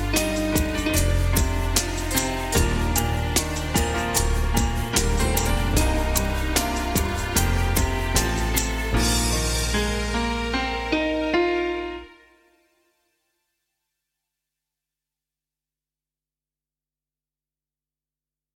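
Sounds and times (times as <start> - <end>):
jingle: 0.0 - 12.5.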